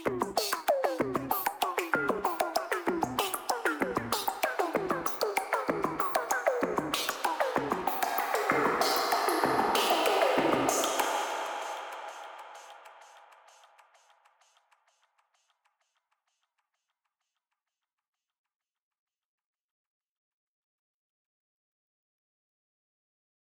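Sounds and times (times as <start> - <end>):
odd percussion sequence: 0.1 - 14.1.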